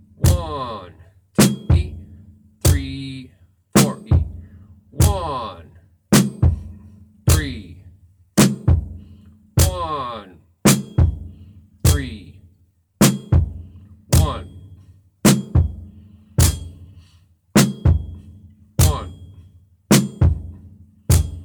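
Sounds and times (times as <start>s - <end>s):
drum beat: 0.0s - 0.7s, 1.4s - 2.0s, 2.6s - 3.0s, 3.8s - 4.4s, 5.0s - 5.5s, 6.2s - 7.7s, 8.4s - 9.0s, 9.6s - 10.1s, 10.7s - 12.3s, 13.0s - 14.7s, 15.3s - 16.9s, 17.6s - 21.4s.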